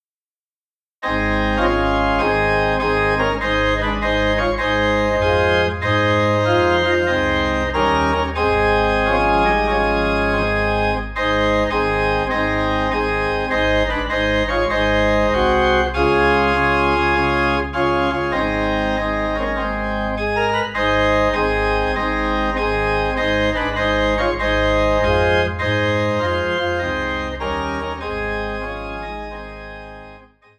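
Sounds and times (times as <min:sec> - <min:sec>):
organ in A flat: 0:01.0 - 0:30.5.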